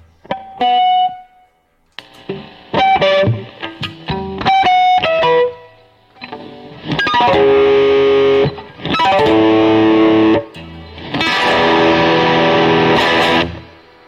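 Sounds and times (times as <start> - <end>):
electric guitar played through effects: 0.0 - 14.0.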